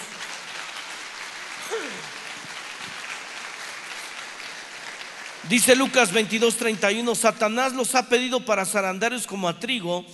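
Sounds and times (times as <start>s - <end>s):
audience applause: 0.0s - 6.4s
speech: 5.4s - 10.1s.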